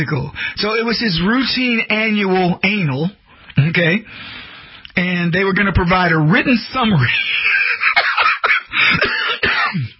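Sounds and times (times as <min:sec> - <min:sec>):
speech: 0:00.0 - 0:04.4, 0:05.0 - 0:08.0
person laughing: 0:07.0 - 0:09.9
person coughing: 0:07.8 - 0:09.9.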